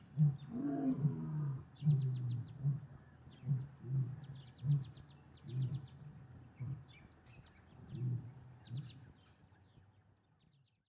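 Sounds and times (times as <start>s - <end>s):
lions in savannah: 0.1s - 6.9s.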